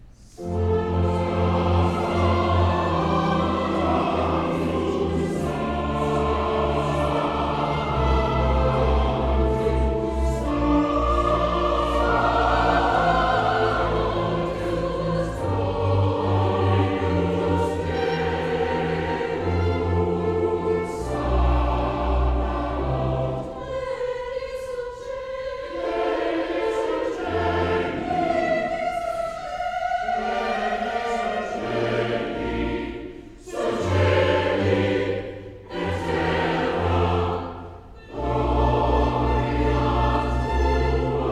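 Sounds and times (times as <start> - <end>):
chancel choir singing a mass: 0.0 - 41.3.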